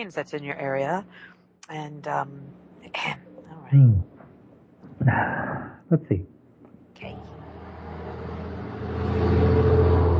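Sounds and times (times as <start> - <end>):
speech: 0.0 - 4.1, 5.0 - 6.3
car driving away: 7.1 - 10.1.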